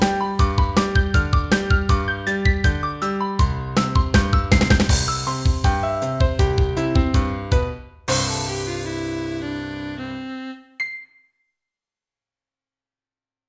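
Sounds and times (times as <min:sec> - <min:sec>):
drums: 0:00.0 - 0:09.6.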